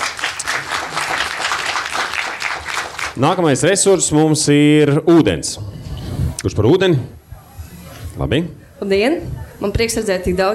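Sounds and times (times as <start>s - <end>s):
steady audience applause: 0.0s - 3.2s
speech: 3.2s - 5.8s, 6.4s - 7.2s, 8.2s - 10.5s.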